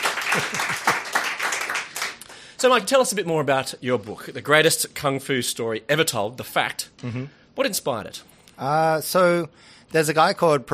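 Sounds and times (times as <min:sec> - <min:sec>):
round of applause: 0:00.0 - 0:02.3
speech: 0:00.4 - 0:00.9, 0:02.6 - 0:10.7.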